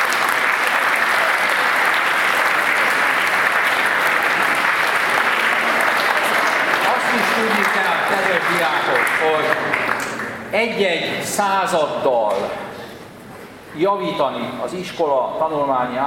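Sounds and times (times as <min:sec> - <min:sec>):
audience applause at a school event: 0:00.0 - 0:10.4
speech: 0:10.5 - 0:12.6, 0:13.8 - 0:16.0.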